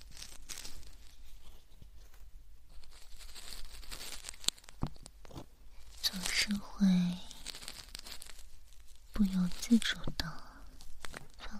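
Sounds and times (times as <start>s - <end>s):
cardboard box crinkling and rustling: 0.0s - 11.4s
speech: 9.7s - 10.1s.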